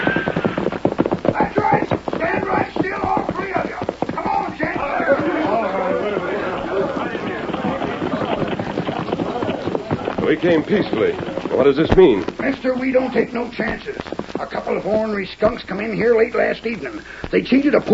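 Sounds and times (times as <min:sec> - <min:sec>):
horses of a tired posse clip-clopping and stamping outside a cafe: 0:00.0 - 0:17.9
laughter: 0:04.2 - 0:11.8
speech: 0:10.4 - 0:17.9.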